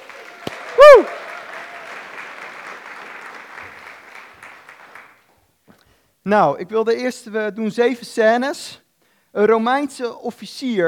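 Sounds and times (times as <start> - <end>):
audience applause: 0.0 - 5.2
speech: 0.9 - 1.2, 6.3 - 10.8.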